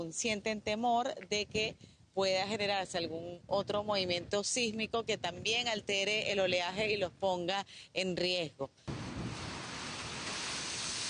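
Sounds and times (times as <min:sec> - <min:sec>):
speech: 0:00.0 - 0:08.9
strong wind at the shore: 0:01.4 - 0:07.2, 0:08.9 - 0:11.0.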